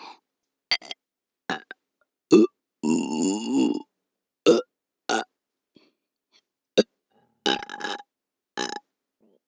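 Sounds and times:
person burping for ASMR: 0:00.7 - 0:00.9, 0:01.5 - 0:01.7, 0:02.3 - 0:03.9, 0:04.5 - 0:05.3, 0:07.5 - 0:08.8.

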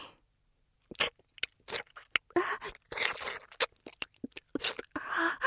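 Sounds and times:
deep kissing: 0:00.9 - 0:05.1.

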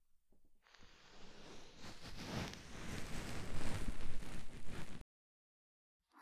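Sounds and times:
ASMR ear massage sounds on the right side: 0:00.8 - 0:05.0.

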